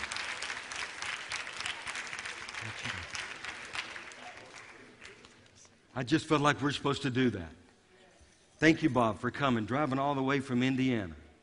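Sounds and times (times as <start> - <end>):
audience applause: 0.0 - 5.4
speech: 6.0 - 7.6, 8.6 - 11.2.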